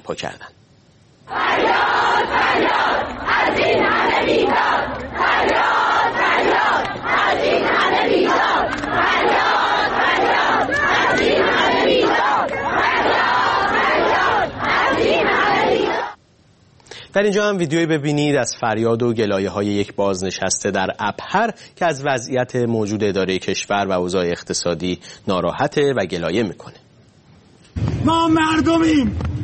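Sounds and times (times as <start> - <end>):
speech: 0.1 - 0.6, 1.3 - 9.5, 17.2 - 26.8, 27.8 - 29.3
large protest crowd chanting in unison: 1.3 - 16.2.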